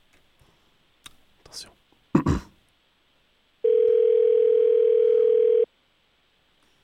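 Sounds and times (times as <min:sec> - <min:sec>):
telephone ring tone on an outgoing call: 0:03.6 - 0:05.7.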